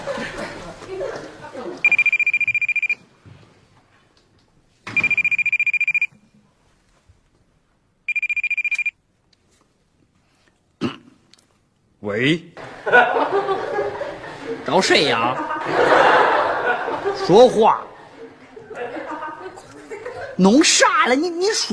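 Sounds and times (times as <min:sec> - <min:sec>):
laughter: 0:00.0 - 0:01.9, 0:12.6 - 0:20.4
telephone ringing: 0:01.8 - 0:03.0, 0:05.0 - 0:06.2, 0:08.1 - 0:09.0
speech: 0:12.0 - 0:13.6, 0:14.6 - 0:16.2, 0:17.2 - 0:17.9, 0:20.4 - 0:21.7.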